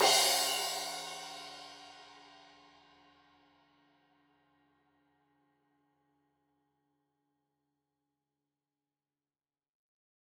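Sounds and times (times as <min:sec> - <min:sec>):
15 inch crash cymbal edge hit: 0:00.0 - 0:02.5.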